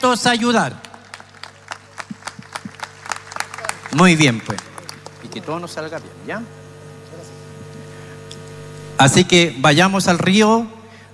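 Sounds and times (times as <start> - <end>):
speech: 0.0 - 0.9, 3.9 - 4.7, 5.3 - 6.6, 9.0 - 11.1
low electrical hum: 0.0 - 11.1
sparse applause from a small audience: 0.8 - 5.9.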